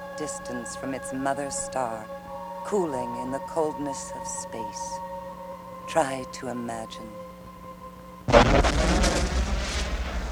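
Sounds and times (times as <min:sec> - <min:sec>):
faint tonal hum: 0:00.0 - 0:10.3
speech: 0:00.2 - 0:05.1, 0:05.9 - 0:07.2
deep boom: 0:08.3 - 0:10.3
loud sustained rumbling roar with crackling bursts: 0:08.3 - 0:10.3.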